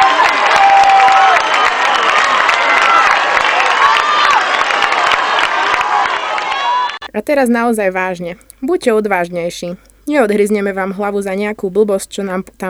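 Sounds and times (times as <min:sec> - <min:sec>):
audience applause and cheering: 0:00.0 - 0:07.1
speech: 0:07.2 - 0:12.6.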